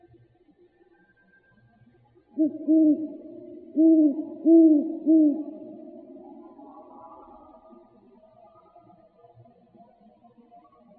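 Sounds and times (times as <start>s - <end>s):
great horned owl hooting: 2.4s - 6.9s.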